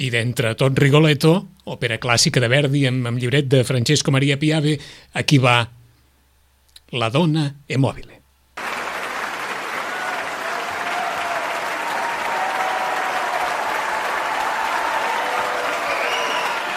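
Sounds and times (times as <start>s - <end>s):
speech: 0.0s - 5.8s, 6.9s - 8.2s
enthusiastic concert audience applause: 8.6s - 16.7s.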